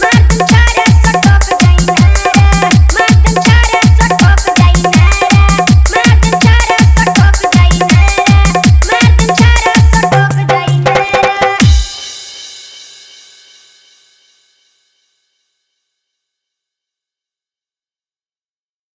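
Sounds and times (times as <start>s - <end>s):
old Bhojpuri song mix with hard dholak and bass: 0.0s - 13.4s.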